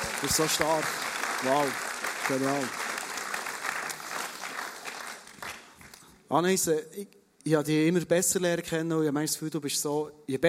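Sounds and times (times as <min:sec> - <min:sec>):
audience applause: 0:00.0 - 0:06.0
speech: 0:00.2 - 0:02.8, 0:06.3 - 0:10.4.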